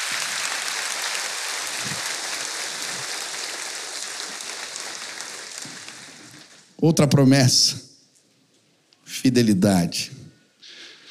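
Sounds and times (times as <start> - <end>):
audience applauding: 0.0 - 6.8
speech: 6.8 - 7.8, 9.2 - 10.2.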